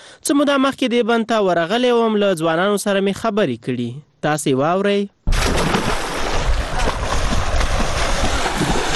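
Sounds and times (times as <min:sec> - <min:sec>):
speech: 0:00.2 - 0:05.7
young man swimming and splashing in a deep dam: 0:05.3 - 0:08.9.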